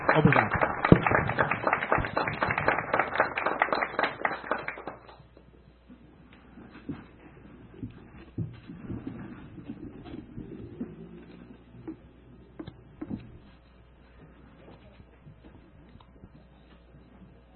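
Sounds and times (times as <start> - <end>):
people applauding: 0.0 - 5.3.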